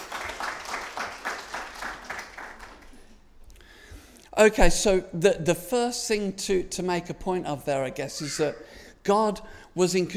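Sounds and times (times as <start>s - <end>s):
crowd applauding: 0.0s - 3.2s
speech: 4.4s - 10.1s.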